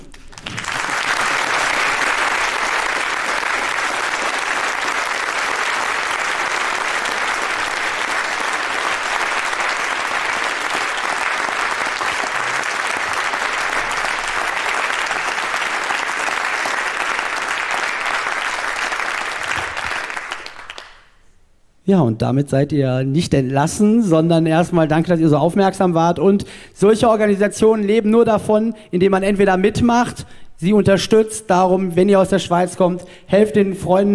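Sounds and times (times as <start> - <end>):
audience applause: 0.0 - 21.1
speech: 21.9 - 34.1.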